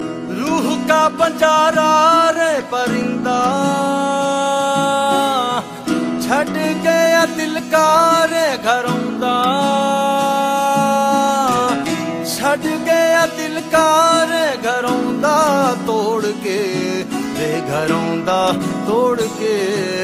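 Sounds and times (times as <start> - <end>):
man's voice: 0.0 - 20.0.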